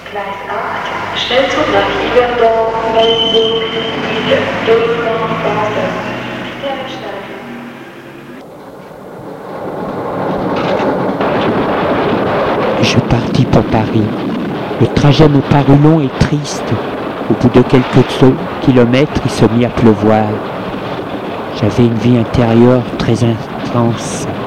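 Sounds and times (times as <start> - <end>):
voices: 0.0 - 7.7, 14.8 - 20.4, 21.5 - 24.3
train rumbling as it pulls away: 0.0 - 24.4
whining tonal hums: 0.0 - 24.4
speech: 0.1 - 6.2, 13.7 - 14.4, 15.0 - 20.6, 21.6 - 24.3
rush of train wheels and air: 0.8 - 24.4.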